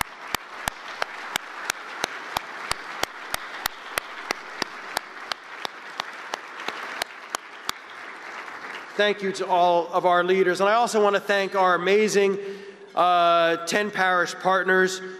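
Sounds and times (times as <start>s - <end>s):
audience applause: 0.0s - 9.9s
speech: 9.0s - 15.1s.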